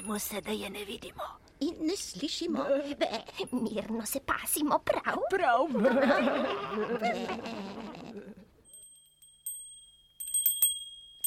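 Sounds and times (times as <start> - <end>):
speech: 0.1 - 8.3
laughter: 5.7 - 8.4
small bell ringing: 8.6 - 11.2.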